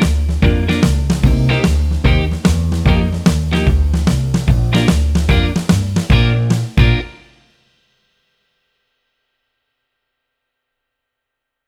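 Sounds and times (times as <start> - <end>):
jazz backing track: 0.0 - 7.3.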